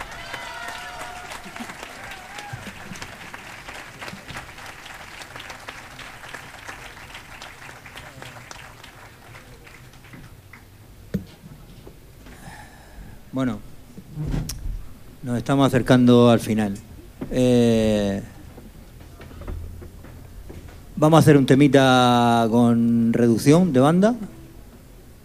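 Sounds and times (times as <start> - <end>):
audience applause: 0.0 - 10.8
speech: 13.4 - 14.4, 15.2 - 18.3, 21.0 - 24.3.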